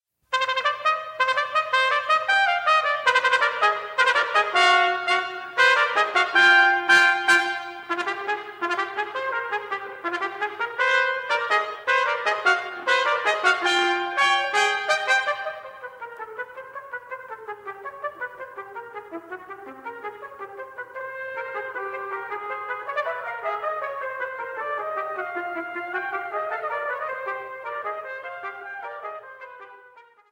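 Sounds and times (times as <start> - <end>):
two trumpets playing: 0.3 - 30.3.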